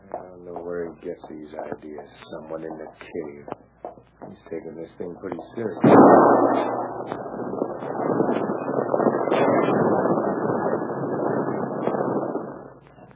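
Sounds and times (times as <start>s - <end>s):
speech: 0.9s - 10.0s
warning gunshot in a cave knocking rocks loose: 5.7s - 12.8s.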